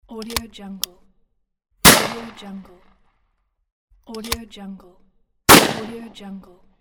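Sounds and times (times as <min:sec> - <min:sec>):
rifle shot: 0:01.9 - 0:02.6, 0:05.5 - 0:06.2.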